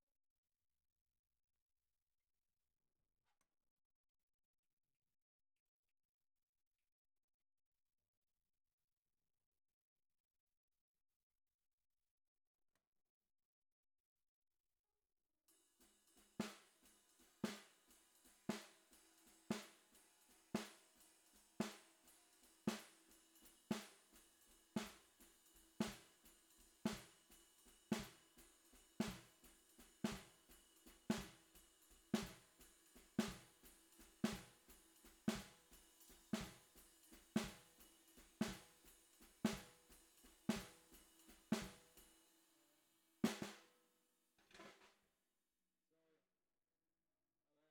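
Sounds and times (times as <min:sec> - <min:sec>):
bottom snare drum: 0:15.8 - 0:42.2, 0:43.2 - 0:43.8, 0:44.4 - 0:45.0.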